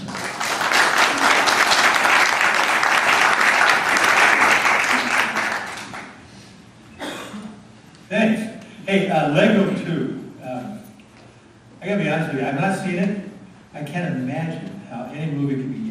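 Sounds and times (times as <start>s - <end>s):
audience applause welcoming a guest: 0.0s - 6.2s
speech: 8.9s - 10.2s, 12.2s - 13.2s, 14.0s - 15.9s.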